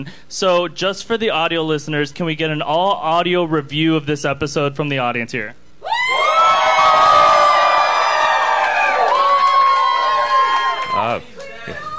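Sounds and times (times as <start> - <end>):
speech: 0.0 - 5.6
audience cheering and screaming: 5.8 - 11.9.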